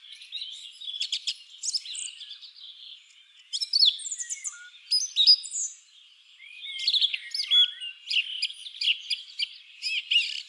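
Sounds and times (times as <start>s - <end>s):
song thrush singing with quick repeated notes and whistles: 0.0s - 10.4s.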